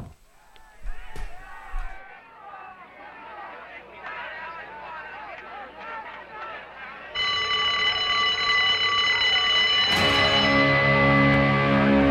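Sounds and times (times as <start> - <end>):
school bell ringing: 7.1 - 12.0.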